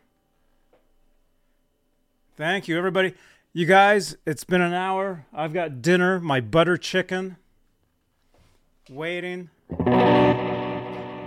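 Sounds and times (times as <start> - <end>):
speech: 2.4 - 7.4, 8.8 - 10.4
distorted electric guitar chord through heavy effects: 9.7 - 11.2.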